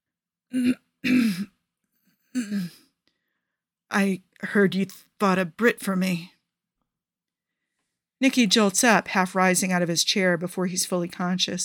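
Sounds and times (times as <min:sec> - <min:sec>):
speech: 0:00.5 - 0:00.8, 0:04.0 - 0:06.4, 0:08.2 - 0:11.6
man clearing his throat: 0:00.5 - 0:01.6, 0:02.3 - 0:02.9.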